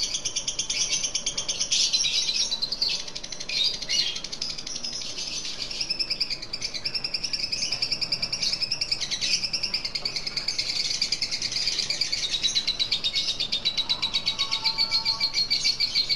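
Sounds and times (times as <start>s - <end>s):
Lutino lovebird giving the ngekek chattering call: 0.0s - 16.1s.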